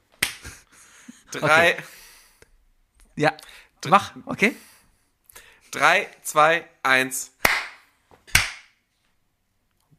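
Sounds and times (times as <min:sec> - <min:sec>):
hand clap for audio sync: 0:00.1 - 0:00.6, 0:07.4 - 0:08.8
speech: 0:01.3 - 0:02.0, 0:03.2 - 0:04.7, 0:05.7 - 0:07.3.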